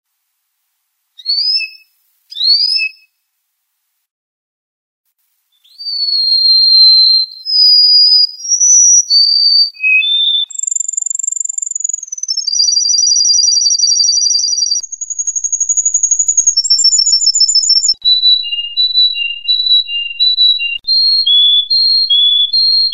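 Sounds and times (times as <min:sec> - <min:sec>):
canary song in clear whistled tours: 0:01.2 - 0:03.1, 0:05.6 - 0:22.9.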